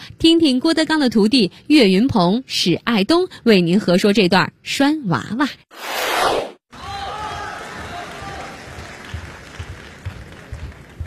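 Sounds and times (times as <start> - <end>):
speech: 0.2 - 6.9
audience applause at a live crosstalk comedy show at Deyun She in Beijing: 6.8 - 11.0.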